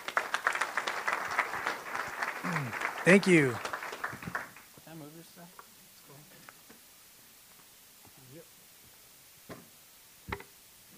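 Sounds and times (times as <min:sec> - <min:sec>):
church congregation applause: 0:00.0 - 0:04.7
speech: 0:02.5 - 0:03.7.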